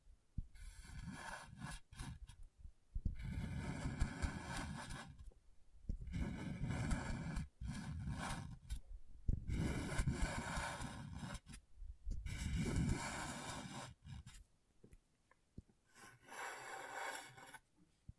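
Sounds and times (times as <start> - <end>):
scratching on a scratchboard: 0.6 - 2.4, 3.1 - 5.3, 6.0 - 11.6, 12.2 - 14.4, 16.0 - 17.7.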